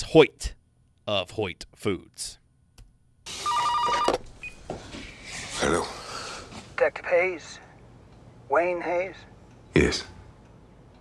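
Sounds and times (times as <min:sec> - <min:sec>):
speech: 0:00.0 - 0:02.4, 0:05.6 - 0:06.0, 0:06.8 - 0:07.6, 0:08.5 - 0:10.2
telephone ringing in a drama scene: 0:03.3 - 0:04.2.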